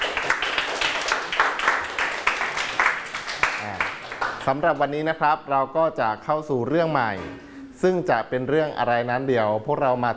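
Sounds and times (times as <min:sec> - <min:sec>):
students clapping hands: 0:00.0 - 0:04.8
speech: 0:04.4 - 0:10.1.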